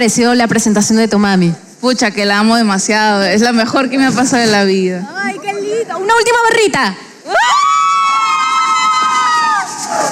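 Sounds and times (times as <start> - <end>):
speech: 0.0 - 7.6
loud high cry: 7.3 - 9.9
audience cheering at a live presentation: 7.3 - 10.1.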